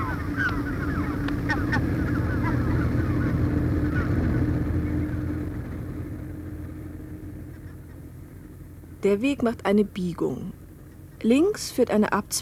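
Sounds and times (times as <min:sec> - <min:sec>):
seagulls squawking: 0:00.0 - 0:05.8
steady low engine-like rumble: 0:00.0 - 0:12.4
speech: 0:09.0 - 0:10.6, 0:11.2 - 0:12.4.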